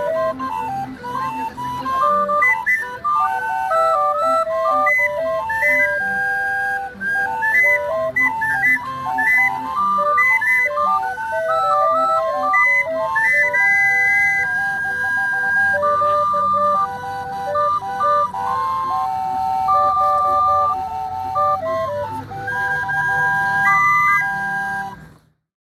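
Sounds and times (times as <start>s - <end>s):
barrel organ playing in Plaza Hidalgo, Coyoacan, Mexico: 0.0s - 25.2s.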